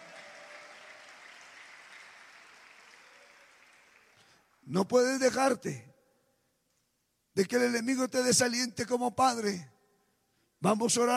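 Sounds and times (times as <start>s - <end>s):
audience applauding: 0.0s - 4.6s
speech: 4.6s - 5.9s, 7.4s - 9.7s, 10.6s - 11.1s.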